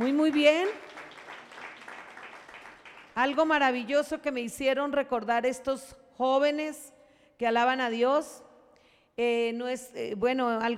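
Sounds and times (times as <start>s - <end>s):
audience applause: 0.0s - 3.2s
speech: 0.1s - 0.9s, 3.2s - 8.4s, 9.2s - 10.7s.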